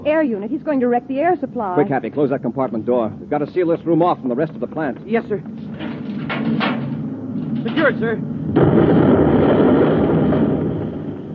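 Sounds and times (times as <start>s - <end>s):
speech: 0.0s - 5.6s, 7.6s - 9.7s
spaceship nose rockets blasting the plant: 6.4s - 11.3s.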